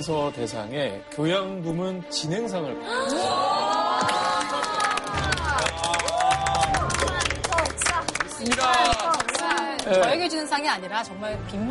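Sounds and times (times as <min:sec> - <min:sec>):
speech: 0:00.0 - 0:04.2, 0:08.4 - 0:11.6
studio audience applause: 0:03.4 - 0:10.2.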